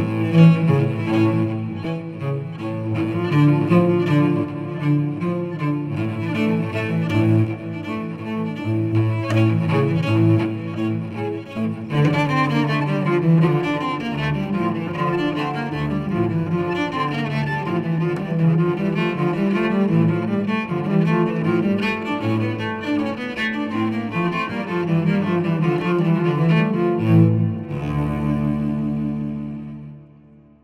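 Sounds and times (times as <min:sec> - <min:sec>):
cello duet: 0:00.0 - 0:30.6.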